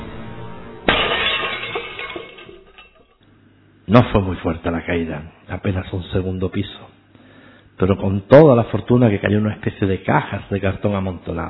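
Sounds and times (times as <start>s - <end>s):
window glass shattering as a body crashes through it: 0.8s - 3.2s
speech: 3.9s - 7.0s, 7.8s - 11.4s.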